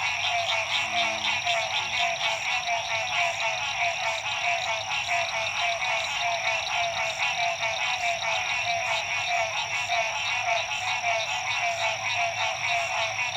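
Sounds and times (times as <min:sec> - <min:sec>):
frogs calling at dusk in Illinois: 0:00.0 - 0:13.3.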